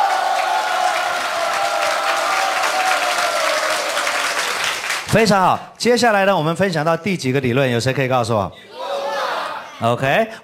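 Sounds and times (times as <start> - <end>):
audience applause: 0.0 - 5.2
speech: 5.1 - 8.9, 9.8 - 10.4.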